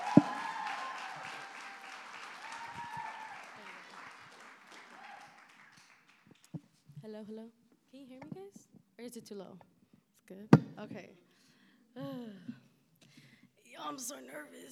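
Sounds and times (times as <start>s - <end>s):
round of applause: 0.0s - 6.6s
speech: 7.1s - 9.7s, 10.3s - 11.2s, 13.8s - 14.7s.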